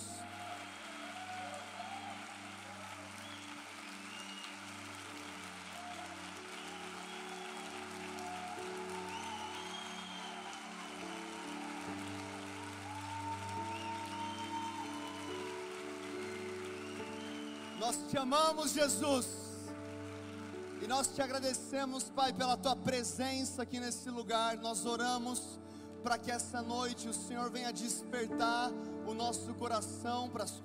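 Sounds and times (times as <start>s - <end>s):
loud audience applause: 0.0s - 18.2s, 19.7s - 21.6s
speech: 17.8s - 19.4s, 20.9s - 30.6s.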